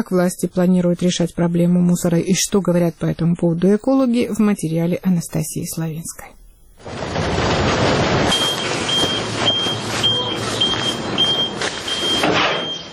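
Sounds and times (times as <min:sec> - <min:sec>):
speech: 0:00.0 - 0:08.4
garbage truck engine rumbling at a landfill: 0:06.9 - 0:12.9
high reversing beeps: 0:08.3 - 0:12.9.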